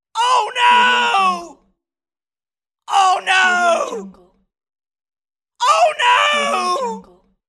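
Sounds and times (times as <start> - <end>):
man screaming: 0.1 - 1.6, 2.9 - 4.0, 5.6 - 7.0.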